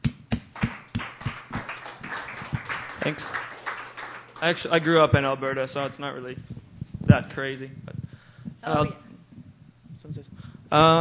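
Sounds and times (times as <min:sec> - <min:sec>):
audience applause welcoming a guitarist to a Sunday night songwriters' stage: 0:00.6 - 0:05.0
speech: 0:03.0 - 0:03.5, 0:04.4 - 0:06.5, 0:07.1 - 0:07.9, 0:08.6 - 0:09.0, 0:10.2 - 0:10.9.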